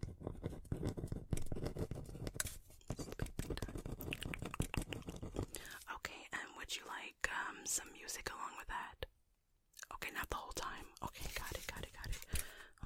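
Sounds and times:
pen scratching as something is written down: 0.0 - 5.7, 10.6 - 12.5
soft whispering during a spa roleplay: 3.4 - 9.1, 9.8 - 12.8.

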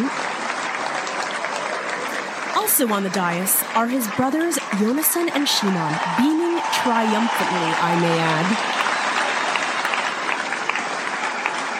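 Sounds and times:
audience applauding an arrival: 0.0 - 11.7
speech: 2.6 - 8.8.

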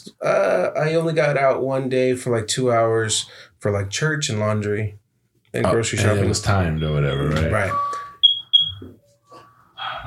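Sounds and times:
speech: 0.2 - 8.0
smoke alarm test beep: 6.0 - 9.1.

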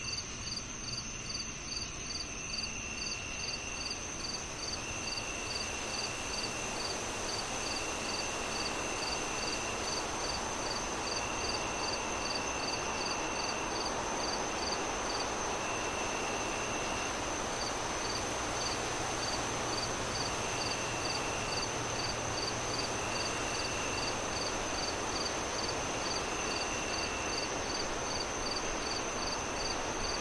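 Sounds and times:
cricket chirps: 0.0 - 30.1.

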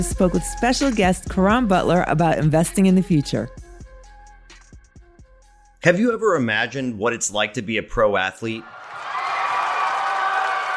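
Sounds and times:
speech: 0.0 - 3.6, 5.8 - 8.8
crowd roar at a sports event: 8.6 - 10.7.

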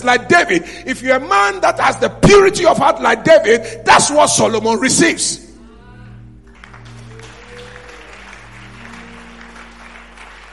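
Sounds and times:
speech: 0.0 - 5.5
audience clapping hands: 6.4 - 10.5.

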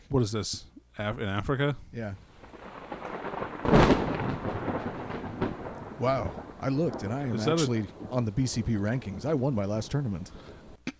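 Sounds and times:
speech: 0.1 - 2.3, 6.0 - 10.6
thunder clap: 2.2 - 10.8.

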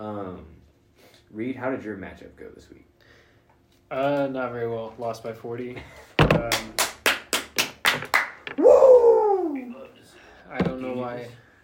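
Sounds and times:
speech: 1.3 - 3.0, 3.9 - 6.8, 10.5 - 11.4
person clapping hands: 6.4 - 8.6
person yelling: 8.6 - 9.8.

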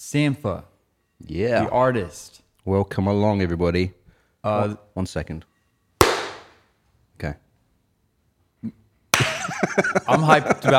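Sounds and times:
speech: 0.0 - 5.5, 7.2 - 7.4, 9.6 - 10.7
hand clapping: 6.0 - 6.5, 9.1 - 9.6
laughter: 9.2 - 10.7.

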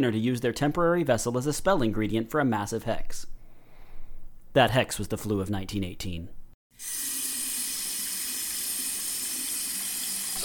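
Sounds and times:
speech: 0.0 - 3.4, 4.5 - 7.1
water running from a faucet: 6.7 - 10.4.

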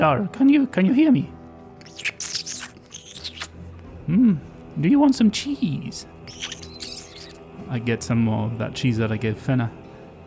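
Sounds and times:
speech: 0.0 - 2.3, 4.1 - 6.5, 7.7 - 9.8
voice imitating rat squeaks and chirps: 1.8 - 3.6, 6.2 - 7.5.

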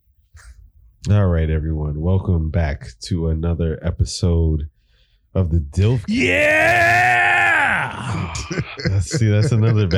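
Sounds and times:
speech: 1.0 - 7.1, 8.0 - 9.9
loud human scream: 6.1 - 8.5
laughter: 8.0 - 9.9.

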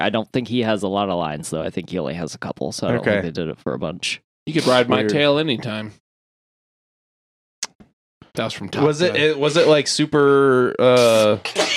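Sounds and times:
speech: 0.0 - 6.0, 8.4 - 11.7
sneeze: 10.9 - 11.7.

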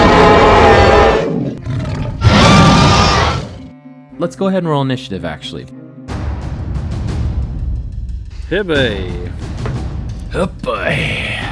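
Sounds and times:
dragon roaring scream: 0.0 - 3.7
speech: 4.2 - 5.8, 8.5 - 9.5, 10.3 - 11.4.

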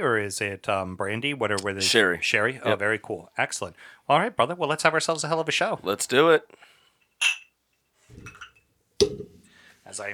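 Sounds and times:
speech: 0.0 - 7.4, 9.9 - 10.1
glasses clinking: 7.2 - 7.5, 8.2 - 9.3.

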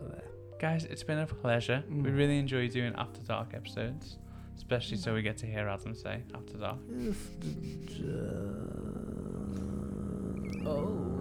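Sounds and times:
speech: 0.6 - 9.6, 10.7 - 11.1
long burp: 8.1 - 11.1.

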